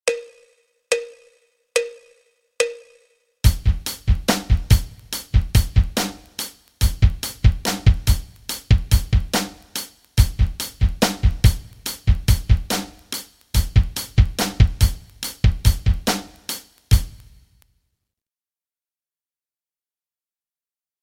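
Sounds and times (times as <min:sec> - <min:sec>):
rock rhythms: 0:03.4 - 0:17.4.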